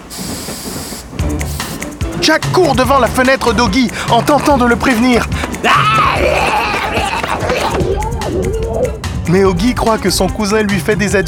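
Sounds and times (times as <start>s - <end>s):
steam train releasing steam: 0.0s - 5.6s
steam train rumbling and chuffing as it begins to move: 0.0s - 11.2s
speech: 2.2s - 7.1s, 9.3s - 11.2s
laughter: 4.9s - 8.2s.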